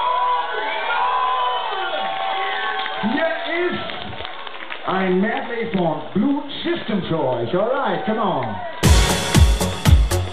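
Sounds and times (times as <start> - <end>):
audience applause and cheering: 0.0 - 5.2, 7.8 - 10.3
speech: 4.9 - 8.8.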